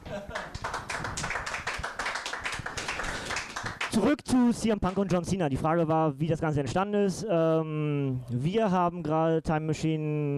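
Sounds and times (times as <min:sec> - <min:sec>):
audience applause: 0:00.3 - 0:04.2
speech: 0:04.0 - 0:10.3.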